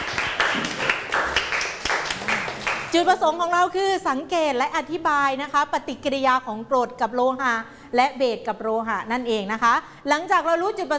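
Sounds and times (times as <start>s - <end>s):
group of students clapping in a classroom: 0.0s - 3.0s
speech: 2.9s - 10.9s.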